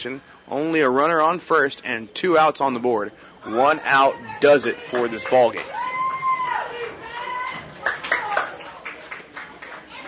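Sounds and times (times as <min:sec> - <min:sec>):
speech: 0:00.0 - 0:05.8
people shouting in the ballgame crowd: 0:03.5 - 0:08.4
crowd cheering and clapping at ballgame: 0:03.9 - 0:10.0.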